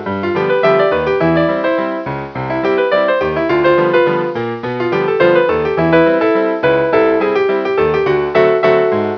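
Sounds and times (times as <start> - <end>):
piano: 0.0 - 9.1.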